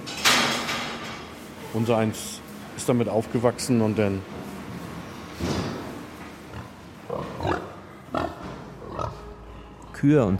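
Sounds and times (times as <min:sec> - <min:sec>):
speech: 0:01.7 - 0:04.4, 0:05.4 - 0:05.6, 0:10.0 - 0:10.3
pigs grunting and snorting: 0:06.4 - 0:09.5.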